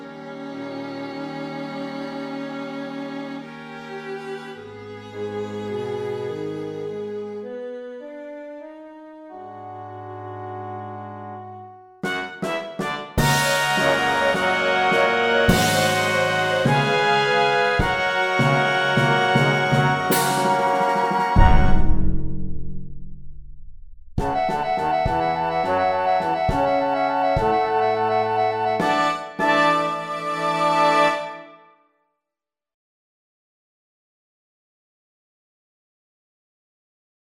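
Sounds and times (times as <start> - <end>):
orchestra: 0.0 - 22.1, 24.2 - 31.7.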